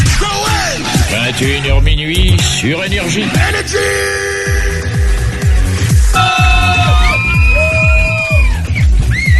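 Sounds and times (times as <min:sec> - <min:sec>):
pounding regular dance-music beat: 0:00.1 - 0:09.3
speech: 0:01.3 - 0:04.8
audience of girls cheering and screaming: 0:06.1 - 0:09.3.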